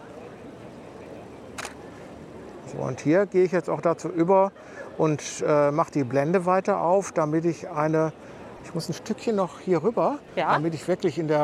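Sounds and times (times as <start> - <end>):
hiss: 0.0 - 11.4
camera shutter click: 1.6 - 1.8
speech: 2.7 - 11.4.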